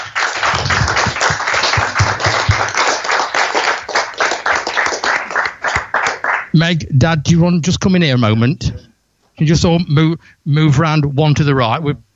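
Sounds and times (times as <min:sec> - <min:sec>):
crowd applause: 0:00.0 - 0:06.6
speech: 0:06.6 - 0:08.8, 0:09.4 - 0:12.0.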